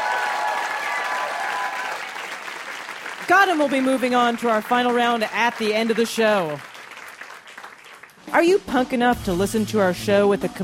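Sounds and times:
audience applause: 0.0 - 8.2
speech: 3.3 - 6.7, 8.3 - 10.6.

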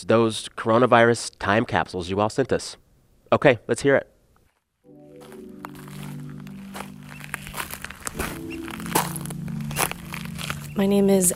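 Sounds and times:
speech: 0.0 - 4.1, 10.8 - 11.3
footsteps crunching on Portland Island near Juneau Alaska: 4.4 - 11.3.

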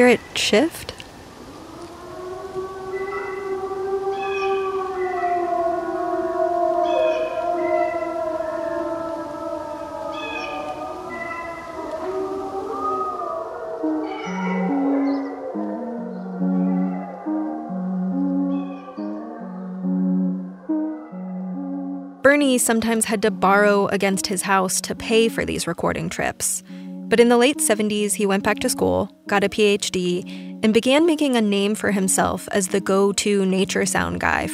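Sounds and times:
speech: 0.0 - 1.0, 22.4 - 34.5
wolf howling: 1.4 - 22.3.

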